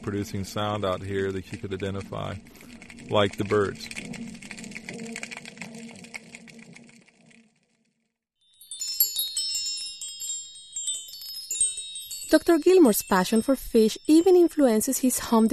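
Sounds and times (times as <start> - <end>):
speech: 0.0 - 4.2, 12.3 - 15.5
fish-shaped wind chime tinkling: 8.4 - 15.5.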